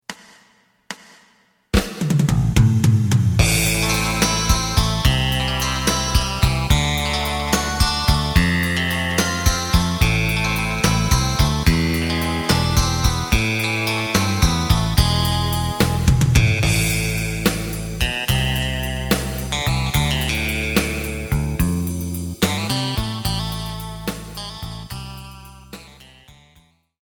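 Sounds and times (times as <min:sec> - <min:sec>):
side guitar: 0:02.0 - 0:26.5.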